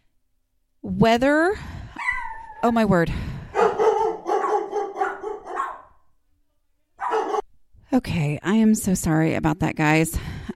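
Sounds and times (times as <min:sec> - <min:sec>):
speech: 0:00.8 - 0:01.7, 0:02.6 - 0:03.3, 0:07.9 - 0:10.5
dogs barking at door knock: 0:02.0 - 0:02.6, 0:03.5 - 0:06.1, 0:07.0 - 0:07.5.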